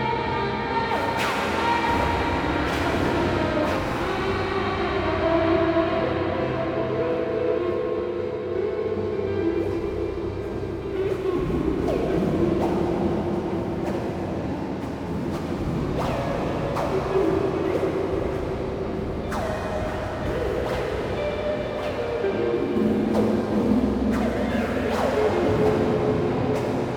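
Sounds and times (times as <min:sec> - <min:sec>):
ensemble playing: 0:00.0 - 0:26.9.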